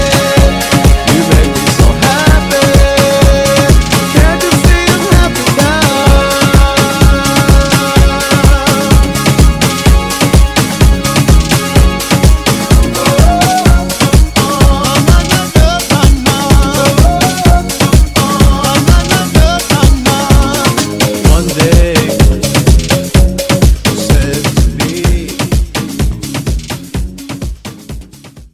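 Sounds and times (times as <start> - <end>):
afrobeat drum beat: 0.0 - 28.5.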